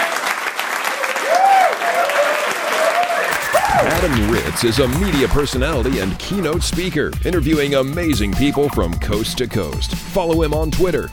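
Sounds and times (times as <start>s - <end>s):
audience applause for the Sigma Phi Epsilon Edge National Convention: 0.0s - 6.2s
speech: 4.0s - 11.1s.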